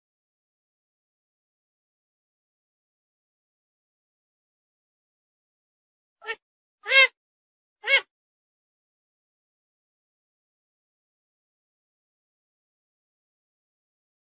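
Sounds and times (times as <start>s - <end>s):
grey-headed swamphen calls: 6.2s - 7.1s, 7.8s - 8.0s.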